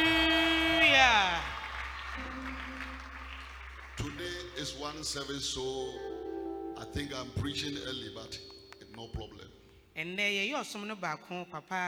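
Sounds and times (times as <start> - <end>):
audience clapping: 0.0 - 9.3
speech: 4.6 - 6.1, 6.8 - 11.8.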